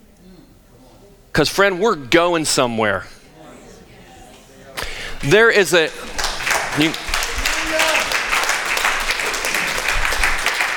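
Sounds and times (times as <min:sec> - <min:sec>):
speech: 0:01.4 - 0:03.2, 0:05.2 - 0:06.1, 0:06.8 - 0:07.0
audience clapping: 0:04.8 - 0:10.7.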